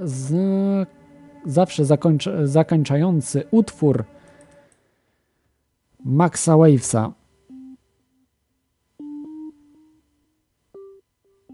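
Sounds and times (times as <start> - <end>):
speech: 0.0 - 4.2, 6.0 - 7.2
telephone call signal: 7.5 - 7.8.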